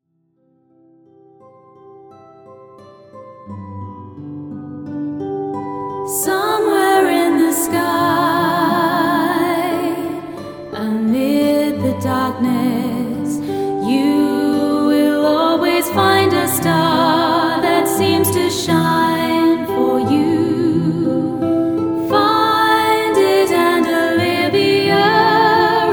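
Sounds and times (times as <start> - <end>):
lullaby music: 6.3 - 25.9.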